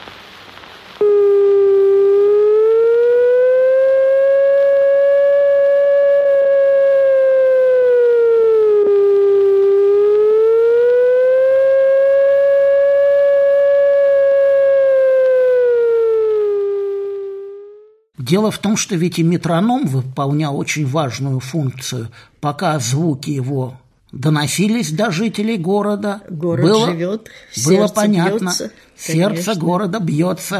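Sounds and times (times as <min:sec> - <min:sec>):
Leningrad wartime air raid siren wailing: 0:01.0 - 0:18.1
speech: 0:18.3 - 0:30.5.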